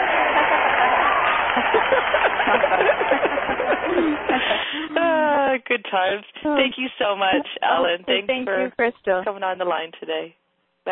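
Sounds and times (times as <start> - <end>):
applause: 0.0 - 4.8
crowd cheering: 0.0 - 5.3
laughter: 0.0 - 5.3, 7.2 - 8.7
speech: 1.6 - 10.9.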